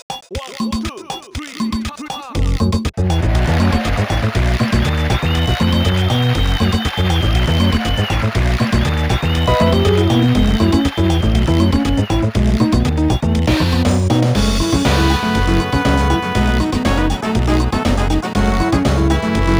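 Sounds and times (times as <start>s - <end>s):
samba music: 0.3s - 19.5s.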